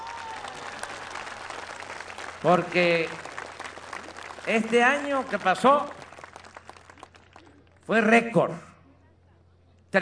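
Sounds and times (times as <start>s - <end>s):
crowd applause: 0.0s - 7.8s
speech: 2.4s - 3.3s, 4.5s - 6.0s, 7.9s - 8.7s.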